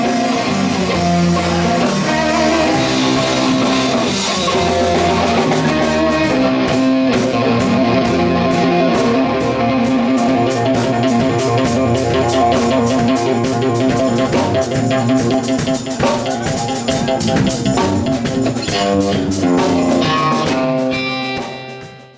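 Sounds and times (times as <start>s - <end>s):
guitar solo with UniVibe effect on: 0.0s - 22.1s.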